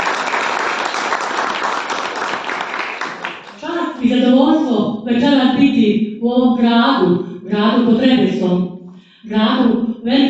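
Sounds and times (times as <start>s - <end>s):
audience applause at a poetry book launch: 0.0s - 3.7s
speech: 4.0s - 10.2s.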